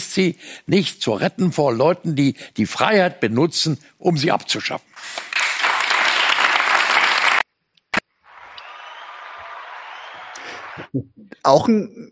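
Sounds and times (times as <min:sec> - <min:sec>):
speech: 0:00.2 - 0:05.3, 0:10.9 - 0:12.1
audience applause: 0:05.0 - 0:07.4, 0:08.2 - 0:10.9.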